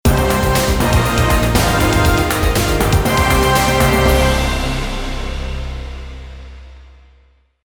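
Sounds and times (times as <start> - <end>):
newscast stinger: 0.0 - 7.0.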